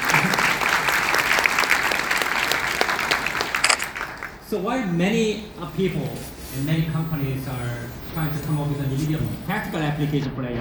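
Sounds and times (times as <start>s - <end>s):
crowd applauding: 0.0s - 10.5s
laughter: 0.0s - 10.5s
speech: 4.5s - 10.5s.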